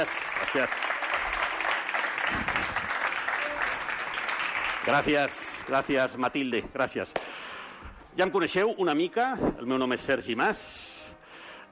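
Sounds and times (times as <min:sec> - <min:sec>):
speech: 0:00.0 - 0:00.9, 0:04.8 - 0:07.3, 0:08.2 - 0:10.7
audience applause: 0:00.0 - 0:05.7.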